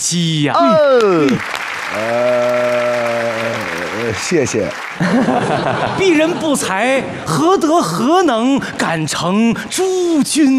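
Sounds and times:
speech: 0.0s - 10.5s
audience applause: 0.6s - 6.8s
laughter: 1.9s - 8.6s.

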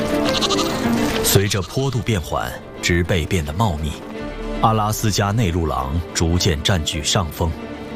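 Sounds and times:
flock of sheep bleating while fleeing: 0.2s - 1.9s
speech: 1.3s - 7.7s.

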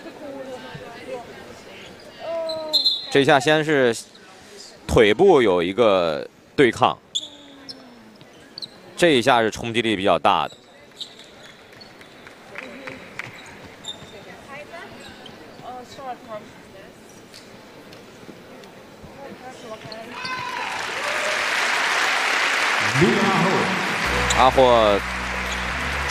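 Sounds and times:
squeaks of a basketball game: 1.8s - 3.2s, 7.1s - 9.0s, 10.4s - 12.2s, 13.3s - 15.8s, 19.8s - 20.5s
speech: 3.1s - 4.1s, 5.0s - 7.0s, 9.0s - 10.6s, 24.4s - 25.2s
arena crowd applause at basketball game: 20.6s - 26.1s
commentator talking: 22.8s - 25.1s.

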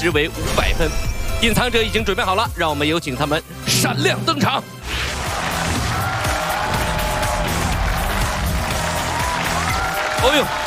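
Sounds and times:
speech: 0.0s - 4.8s, 10.2s - 10.6s
studio audience applause: 4.9s - 10.6s.

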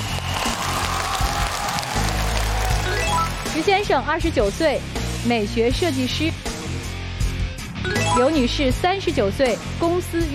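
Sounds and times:
studio audience applause: 0.0s - 3.9s
speech: 3.6s - 6.5s, 7.8s - 10.3s.

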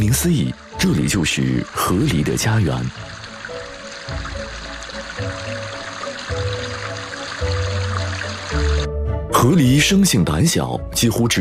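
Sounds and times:
Bulgan River flowing in autumn: 0.0s - 8.9s
speech: 0.1s - 3.2s, 9.4s - 11.3s.

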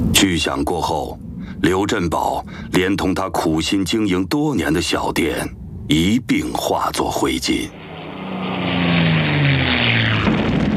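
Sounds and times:
speech: 0.2s - 7.8s
military propeller planes flying overhead: 7.7s - 10.7s.

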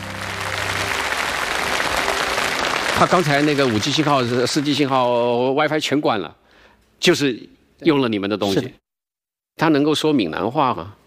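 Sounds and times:
audience applause at a live product demonstration: 0.0s - 5.6s
speech: 3.0s - 6.4s, 7.0s - 8.8s, 9.6s - 11.0s.

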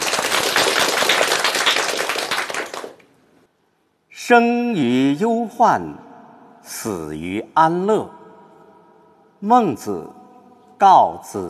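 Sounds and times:
audience applause: 0.0s - 3.0s
speech: 4.3s - 6.0s, 6.8s - 8.2s, 9.4s - 10.2s, 10.8s - 11.4s.

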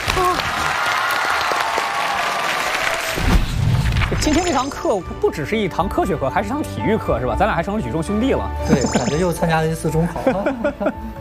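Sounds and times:
audience applause: 0.0s - 3.3s
speech: 4.2s - 11.1s
laughter: 9.9s - 11.1s.

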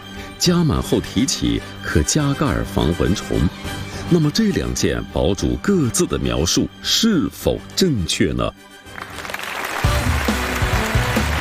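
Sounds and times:
speech: 0.4s - 9.1s
audience applause: 8.9s - 11.3s.

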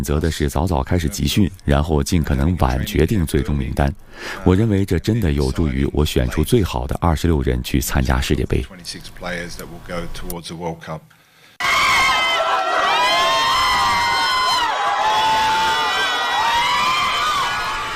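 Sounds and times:
speech: 0.0s - 11.2s
cheering in a hospital in Bogotá: 11.6s - 17.9s.

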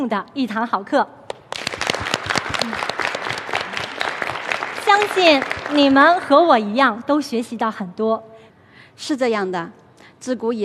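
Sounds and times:
speech: 0.0s - 1.3s, 5.0s - 8.3s, 9.0s - 10.6s
classroom applause: 1.5s - 6.3s.

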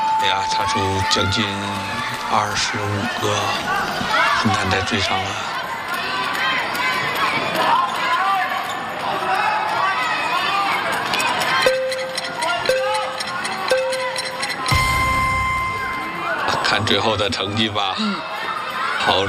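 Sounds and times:
crowd cheering from a neighbouring venue during a sports competition: 0.0s - 19.2s
speech: 0.2s - 5.6s, 16.9s - 18.3s, 19.1s - 19.2s
tonal beeps: 11.6s - 16.6s.

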